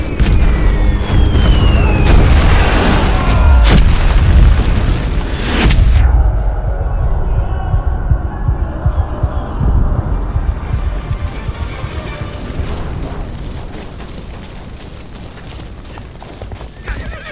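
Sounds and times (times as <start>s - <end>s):
air raid bomb explosions: 0.1s - 13.7s.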